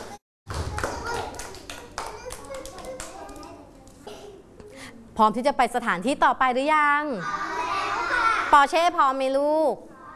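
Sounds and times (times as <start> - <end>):
children clapping hands: 0.5 - 3.6
speech: 5.2 - 7.4, 8.5 - 9.9.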